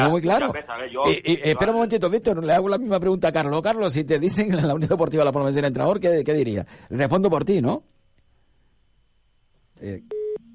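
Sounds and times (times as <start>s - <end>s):
speech: 0.0s - 8.0s, 9.8s - 10.2s
low telephone tone: 9.9s - 10.5s
telephone tone as a phone call cuts off: 10.1s - 10.5s.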